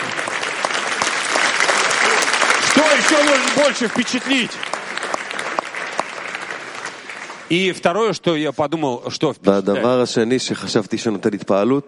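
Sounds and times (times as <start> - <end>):
applause for a guest from Moscow during a lesson: 0.0 - 8.2
speech: 2.8 - 4.7, 7.5 - 11.8.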